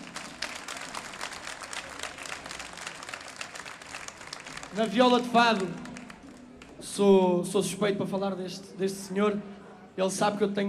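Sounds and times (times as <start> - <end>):
audience applause for a musician: 0.0 - 6.8
speech: 4.7 - 5.8, 6.9 - 10.6.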